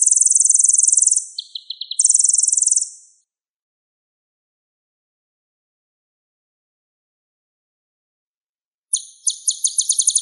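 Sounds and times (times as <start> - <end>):
sunbird singing: 0.0 - 3.2, 8.9 - 10.2.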